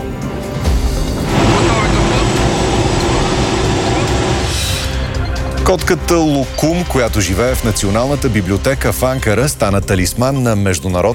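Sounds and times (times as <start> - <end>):
Cougar military helicopter in flight: 0.0 - 7.6
speech: 5.7 - 11.1.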